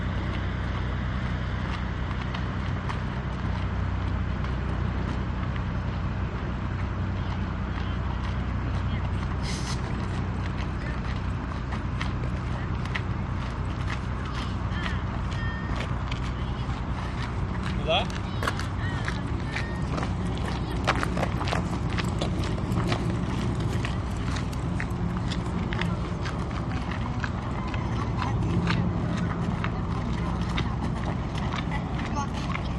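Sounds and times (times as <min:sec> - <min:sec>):
footsteps on Stockholm waterfront light promenade walkway: 0:00.0 - 0:32.7
plane overhead: 0:00.0 - 0:32.7
children on Stockholm waterfront promenade: 0:06.8 - 0:32.7.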